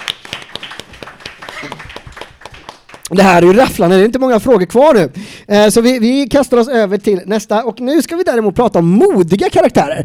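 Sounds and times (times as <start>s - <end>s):
small group clapping: 0.0s - 3.7s
speech: 1.6s - 1.9s, 3.1s - 10.0s.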